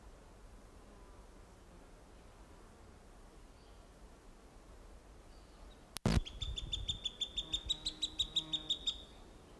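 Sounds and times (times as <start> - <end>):
juvenile Cooper's hawk: 6.1 - 9.3.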